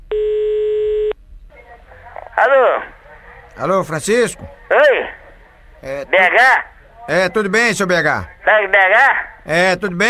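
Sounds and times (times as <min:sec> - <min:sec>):
faint noise: 0:00.0 - 0:10.0
telephone tone as a prank call is placed: 0:00.1 - 0:01.2
speech: 0:02.4 - 0:02.9, 0:03.6 - 0:05.2, 0:05.8 - 0:10.0.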